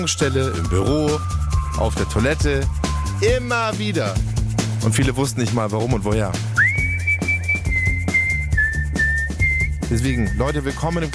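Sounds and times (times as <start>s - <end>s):
whistled melody: 0.0s - 3.6s, 6.5s - 11.1s
speech: 0.0s - 6.6s, 9.9s - 11.1s
backing track with a thumping beat and bass: 0.0s - 11.1s.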